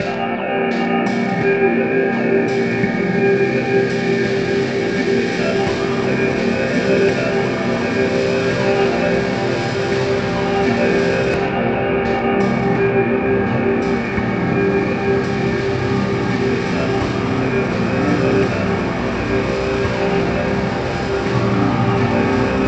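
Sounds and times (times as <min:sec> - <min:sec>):
synth: 0:00.0 - 0:22.6.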